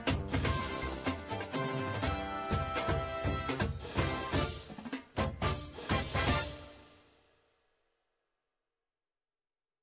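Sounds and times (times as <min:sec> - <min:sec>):
cymbals: 0:00.0 - 0:07.5
music: 0:00.0 - 0:08.3.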